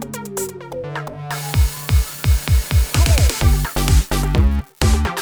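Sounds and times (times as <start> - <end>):
funky noise: 1.3 - 5.1.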